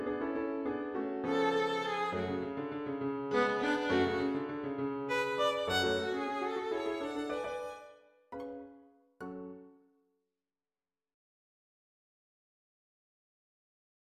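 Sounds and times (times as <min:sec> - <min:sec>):
violin impromptu: 0:01.1 - 0:08.5.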